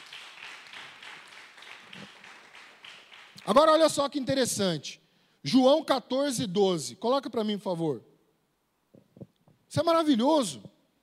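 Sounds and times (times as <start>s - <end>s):
applause: 0.0s - 4.0s
speech: 3.4s - 8.1s, 9.8s - 10.7s.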